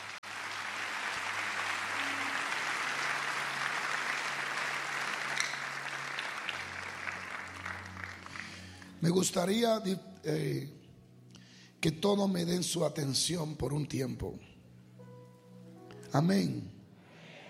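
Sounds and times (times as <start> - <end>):
audience applause: 0.0 - 9.1
speech: 9.0 - 10.8, 11.8 - 14.5, 16.1 - 16.8.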